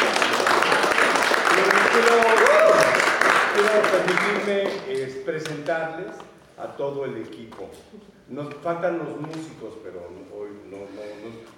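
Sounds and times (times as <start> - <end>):
audience applause: 0.0 - 5.8
speech: 3.8 - 11.5.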